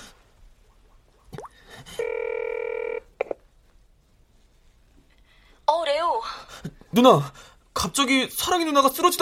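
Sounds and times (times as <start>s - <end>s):
telephone ringing: 2.0s - 3.4s
speech: 6.9s - 9.2s.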